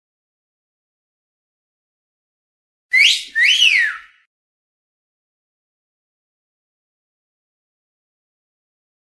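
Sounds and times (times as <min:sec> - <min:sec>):
sexy whistle: 0:02.9 - 0:04.3.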